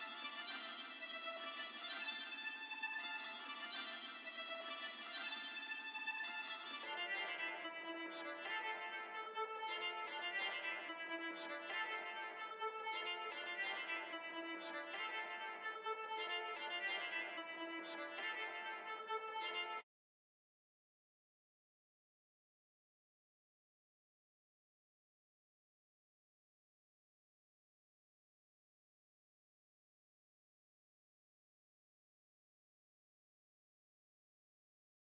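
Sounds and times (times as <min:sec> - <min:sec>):
tremolo violin in D minor: 0:00.0 - 0:19.8.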